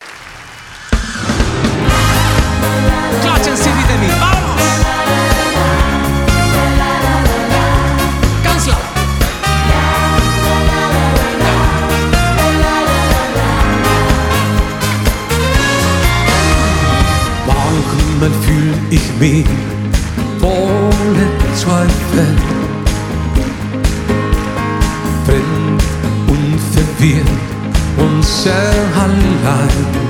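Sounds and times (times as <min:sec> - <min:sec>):
live schlager medley: 0:00.0 - 0:30.0.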